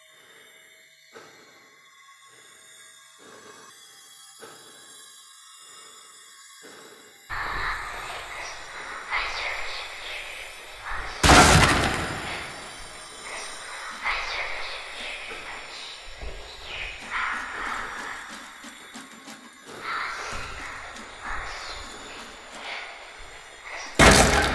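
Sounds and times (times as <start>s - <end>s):
scary disturbing whispers for Halloween: 0.0s - 3.8s, 5.6s - 24.5s
horror sounds for Halloween: 6.6s - 24.5s.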